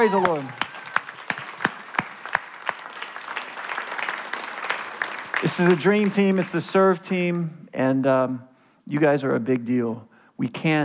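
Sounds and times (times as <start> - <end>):
speech: 0.0 - 0.6, 5.5 - 10.8
audience clapping: 0.0 - 7.5.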